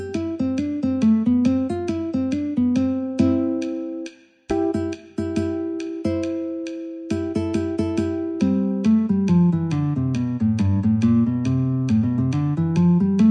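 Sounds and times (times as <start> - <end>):
guitar metronome ticking: 0.0 - 13.2.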